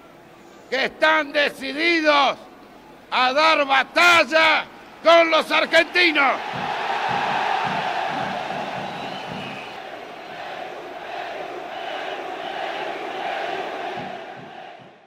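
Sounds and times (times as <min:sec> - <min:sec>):
speech: 0:00.7 - 0:02.5, 0:03.1 - 0:07.2
crowd shouting chants: 0:05.3 - 0:15.0.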